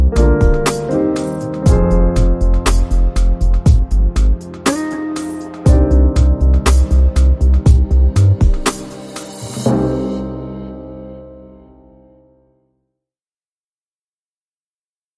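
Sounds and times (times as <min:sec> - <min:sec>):
short swag piano rhythm: 0:00.0 - 0:12.4.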